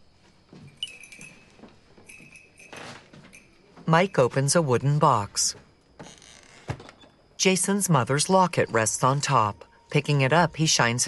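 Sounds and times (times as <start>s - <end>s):
cluster of whistles hanging by strings clinking together: 0.6s - 4.6s
speech: 3.9s - 5.7s, 7.4s - 11.0s.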